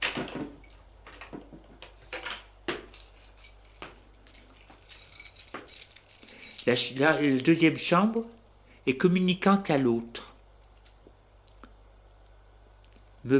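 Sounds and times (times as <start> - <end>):
keys jangling at a hotel room door: 0.6 - 0.9, 2.8 - 8.4
speech: 6.7 - 10.2.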